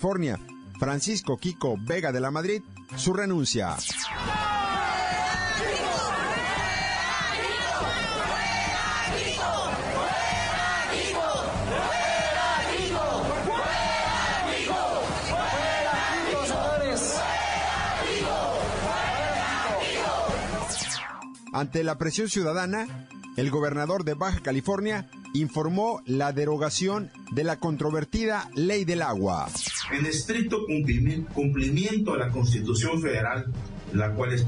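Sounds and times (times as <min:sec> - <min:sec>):
speech: 0:00.0 - 0:04.5, 0:21.6 - 0:34.4
roar of overlapping yells: 0:04.2 - 0:20.7
protest crowd chanting in unison in the streets: 0:04.3 - 0:20.8.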